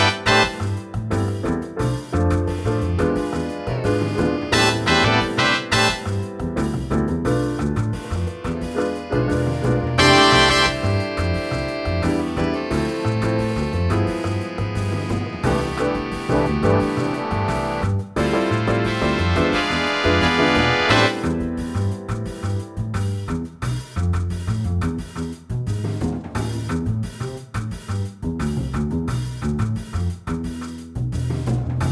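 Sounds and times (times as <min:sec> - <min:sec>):
guitar playing Latin jazz: 0:00.0 - 0:23.2
Latin jazz band playing: 0:00.0 - 0:31.8.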